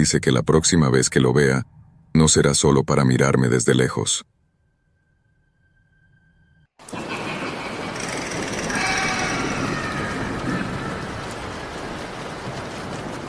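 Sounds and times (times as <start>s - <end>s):
speech: 0.0s - 4.4s
heavy rain during a thunderstorm: 6.8s - 13.2s.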